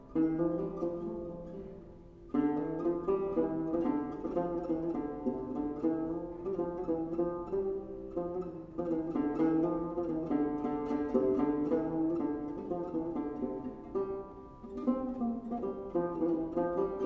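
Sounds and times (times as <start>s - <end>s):
kopuz folk instrument playing: 0.0s - 17.0s.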